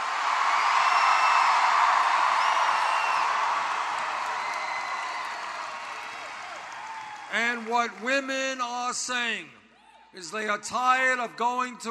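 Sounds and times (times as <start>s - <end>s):
large crowd cheering and applauding: 0.0s - 8.5s
high whistles and whoops: 0.5s - 7.3s
speech: 7.3s - 11.9s.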